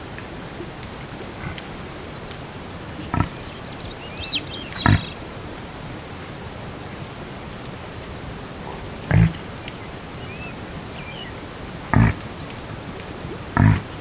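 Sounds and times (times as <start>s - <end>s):
reindeer grunting and clicking: 9.1s - 9.4s, 11.9s - 12.3s, 13.6s - 13.9s.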